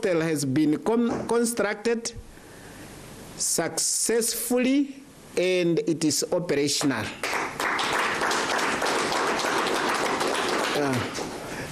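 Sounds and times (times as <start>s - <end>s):
speech: 0.0s - 2.4s, 3.4s - 7.4s, 10.8s - 11.2s
audience clapping hands: 6.8s - 11.5s.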